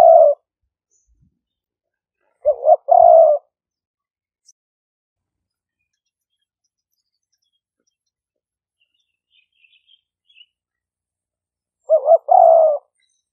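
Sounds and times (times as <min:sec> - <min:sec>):
spotted dove cooing: 0:00.0 - 0:00.4, 0:02.3 - 0:03.5, 0:11.9 - 0:13.0.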